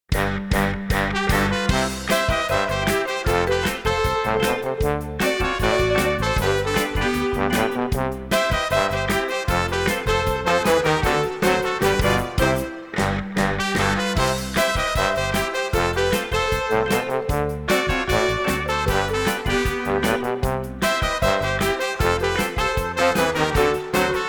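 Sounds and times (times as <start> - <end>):
Mexican brass music: 0.1 - 24.2.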